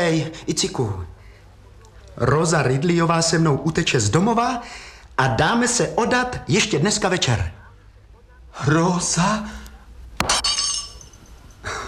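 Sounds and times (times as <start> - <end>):
speech: 0.0 - 1.2, 2.2 - 7.6, 8.6 - 9.6
glass or crockery shattering: 10.2 - 11.6.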